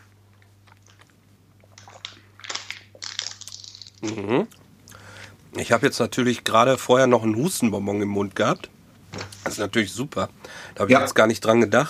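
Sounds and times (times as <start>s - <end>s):
crunchy chewing of a snack: 0.0s - 4.6s
steady low hum: 0.0s - 11.8s
speech: 4.0s - 4.6s, 5.6s - 8.8s, 9.6s - 11.8s.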